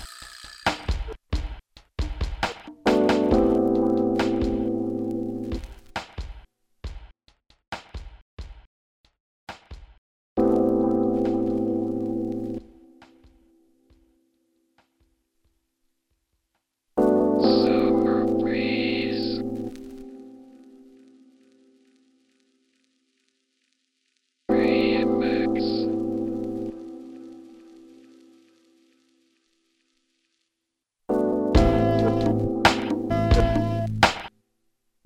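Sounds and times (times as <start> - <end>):
downtempo remix: 0.7 - 6.0, 10.4 - 13.5, 17.0 - 21.5, 24.5 - 28.7, 31.1 - 34.3.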